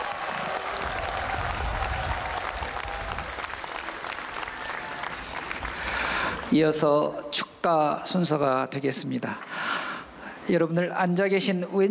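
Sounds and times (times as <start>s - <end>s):
audience cheering: 0.0s - 5.8s
audience applause: 0.0s - 6.5s
speech: 6.5s - 9.8s, 10.5s - 11.8s.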